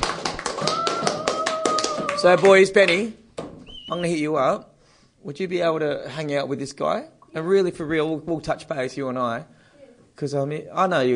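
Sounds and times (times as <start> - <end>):
clapping: 0.0 - 3.1
speech: 2.2 - 3.2, 3.9 - 9.6, 10.2 - 11.1.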